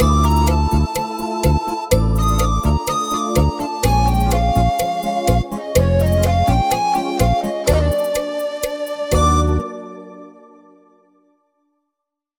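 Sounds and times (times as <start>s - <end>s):
ska music: 0.0s - 9.6s.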